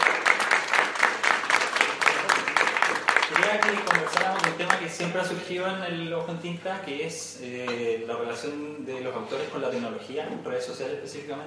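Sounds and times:
audience applause: 0.0 - 5.2
speech: 4.9 - 11.4.

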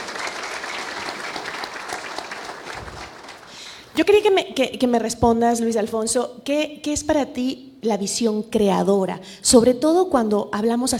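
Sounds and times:
applause: 0.0 - 3.9
speech: 4.0 - 10.9.

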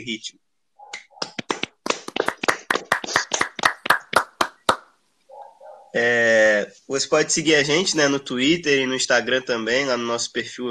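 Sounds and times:
speech: 0.0 - 0.4, 5.9 - 10.6
applause: 1.2 - 4.8.

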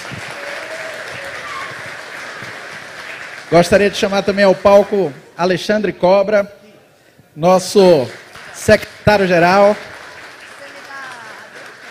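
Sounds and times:
audience applause: 0.0 - 5.3, 7.9 - 11.8
speech: 3.5 - 6.6, 7.4 - 9.9.

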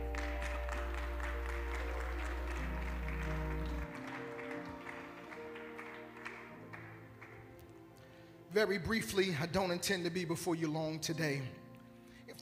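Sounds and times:
audience clapping: 0.0 - 7.9
speech: 8.6 - 11.6.

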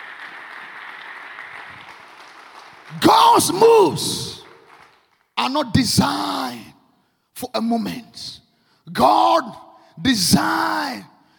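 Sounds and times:
audience clapping: 0.0 - 5.4
speech: 2.9 - 4.4, 5.5 - 6.7, 7.4 - 11.1.

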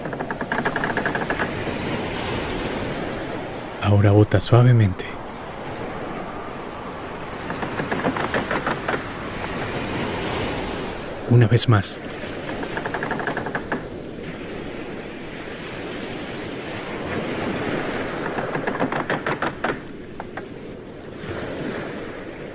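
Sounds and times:
boat rocking gently on sea waves: 0.0 - 2.2, 6.3 - 11.2, 12.0 - 14.2, 17.5 - 20.8
sea waves: 0.0 - 22.5
wind: 0.0 - 22.5
speech: 3.9 - 5.1, 11.3 - 12.3.

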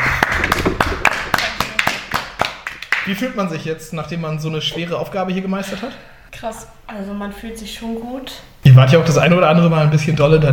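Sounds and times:
small group clapping: 0.0 - 3.4
speech: 3.1 - 10.5.

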